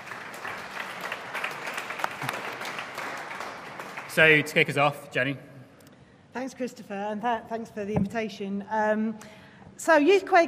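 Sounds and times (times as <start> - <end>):
audience applause for the speakers: 0.0 - 4.8
speech: 4.2 - 5.5, 6.4 - 10.4.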